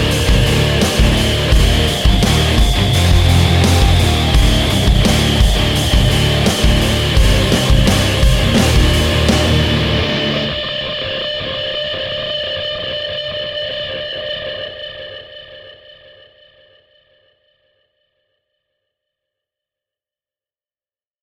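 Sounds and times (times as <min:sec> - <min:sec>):
nu metal music: 0:00.0 - 0:12.5.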